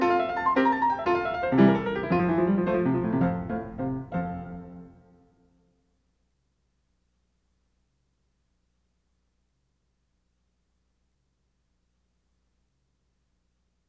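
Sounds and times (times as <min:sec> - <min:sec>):
piano sonata in F, presto movement: 0:00.0 - 0:05.4.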